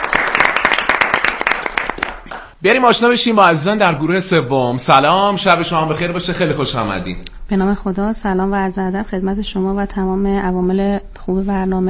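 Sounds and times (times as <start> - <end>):
audience clapping for guests on a Persian-language program: 0.0 - 2.6
speech: 2.6 - 11.8.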